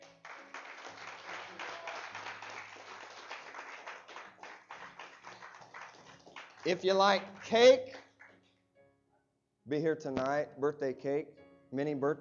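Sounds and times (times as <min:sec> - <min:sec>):
audience clapping hands in praise: 0:00.0 - 0:08.4
speech: 0:06.6 - 0:08.0, 0:09.7 - 0:12.1.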